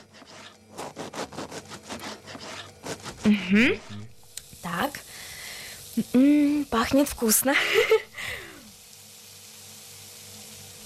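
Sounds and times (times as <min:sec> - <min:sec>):
knife cutting butter: 0:00.0 - 0:04.0
speech: 0:03.2 - 0:04.0, 0:06.0 - 0:08.1.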